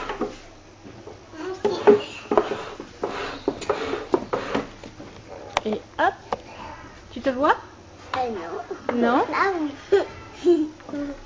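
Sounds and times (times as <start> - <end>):
wooden chair being moved into place: 1.6 - 5.8
speech: 7.2 - 10.0
child murmuring: 8.4 - 11.2.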